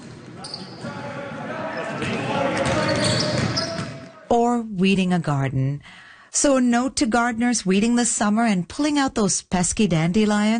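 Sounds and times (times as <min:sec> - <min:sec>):
basketball bouncing: 0:02.0 - 0:04.0
speech: 0:04.6 - 0:10.5.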